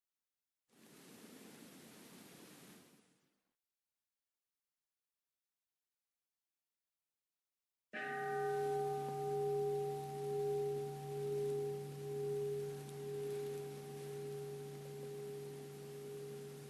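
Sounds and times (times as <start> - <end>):
meditation bell ringing: 8.0 - 16.6.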